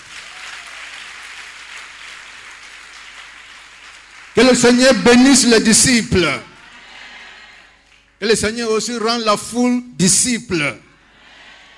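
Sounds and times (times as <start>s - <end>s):
audience applauding: 0.0s - 8.1s
speech: 4.4s - 6.5s, 8.2s - 10.8s.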